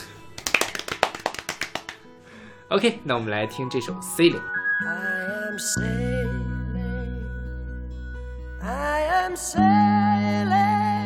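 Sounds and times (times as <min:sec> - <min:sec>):
hands clapping to cheer a child: 0:00.4 - 0:02.1
speech: 0:02.7 - 0:06.5, 0:08.7 - 0:10.6.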